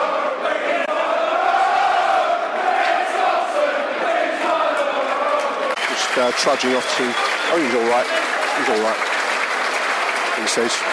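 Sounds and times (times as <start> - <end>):
football crowd roaring: 0.0 - 10.9
speech: 6.2 - 9.1, 10.4 - 10.9.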